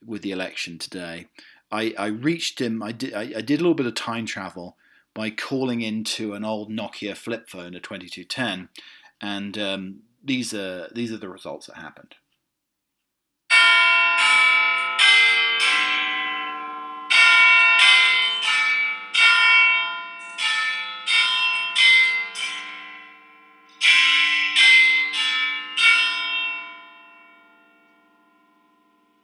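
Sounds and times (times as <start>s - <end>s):
speech: 0.1s - 12.2s
Big Ben clock tower bell chiming: 13.5s - 29.2s.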